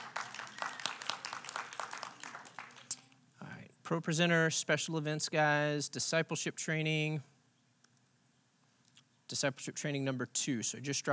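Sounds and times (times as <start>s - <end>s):
crowd applauding: 0.0s - 3.1s
speech: 3.9s - 7.3s, 9.4s - 11.1s.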